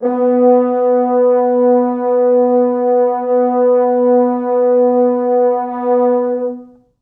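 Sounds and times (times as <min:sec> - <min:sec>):
four French horns sustaining B2: 0:00.0 - 0:06.9.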